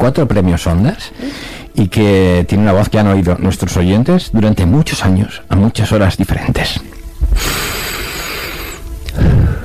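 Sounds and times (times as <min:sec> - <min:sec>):
speech: 0:00.0 - 0:07.8
man breathing: 0:01.2 - 0:01.8, 0:07.2 - 0:09.6.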